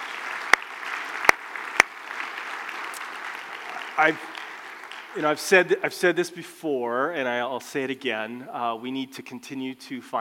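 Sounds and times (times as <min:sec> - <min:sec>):
audience applause: 0:00.0 - 0:05.8
speech: 0:04.0 - 0:04.4, 0:05.2 - 0:10.1.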